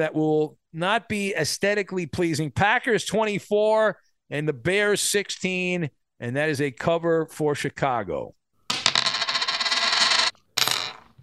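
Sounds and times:
speech: 0:00.0 - 0:08.4
penny coin flipped and landing with metallic rattle: 0:08.8 - 0:11.0.

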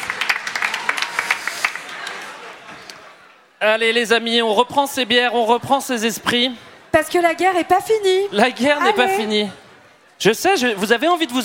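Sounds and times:
audience applause: 0:00.0 - 0:02.7
speech: 0:03.6 - 0:09.6, 0:10.2 - 0:11.4.

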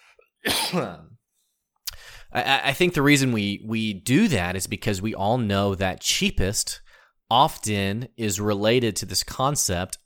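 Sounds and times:
person coughing: 0:00.4 - 0:01.2
speech: 0:00.7 - 0:01.1, 0:02.3 - 0:10.0.

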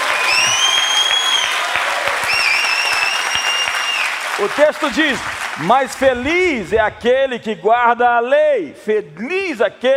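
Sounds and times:
audience applause: 0:00.0 - 0:07.1
speech: 0:04.4 - 0:09.9.

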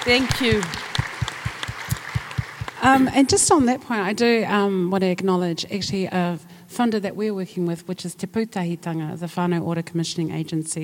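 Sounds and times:
speech: 0:00.0 - 0:00.8, 0:02.8 - 0:10.8
audience applause: 0:00.0 - 0:03.3.

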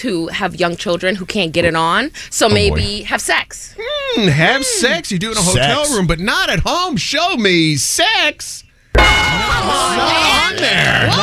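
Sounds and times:
speech: 0:00.0 - 0:11.2
loud game show bell clanging: 0:09.0 - 0:10.5
excited voices shouting: 0:09.3 - 0:11.2.

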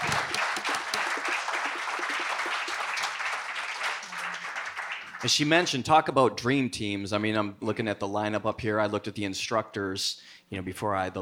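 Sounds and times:
audience applause: 0:00.0 - 0:05.6
speech: 0:05.2 - 0:11.2.

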